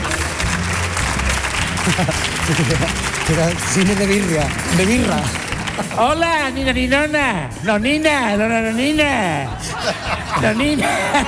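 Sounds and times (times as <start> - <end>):
audience applause: 0.0 - 6.5
laughter: 1.5 - 4.1, 5.6 - 6.2, 9.2 - 11.2
speech: 1.9 - 11.2.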